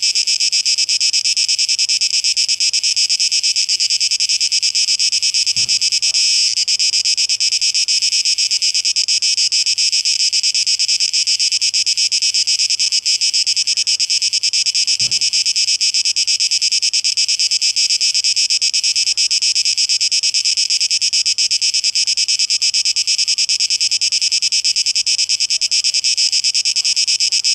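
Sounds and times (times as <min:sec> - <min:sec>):
cicada chorus high pulsing buzz: 0:00.0 - 0:27.5
dull low thump: 0:05.5 - 0:06.4.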